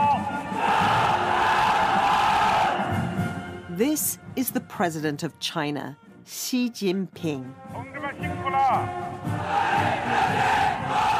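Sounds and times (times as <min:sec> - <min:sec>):
massed chorus of soldiers shouting in unison: 0:00.4 - 0:03.0, 0:09.4 - 0:11.1
speech: 0:03.8 - 0:09.1.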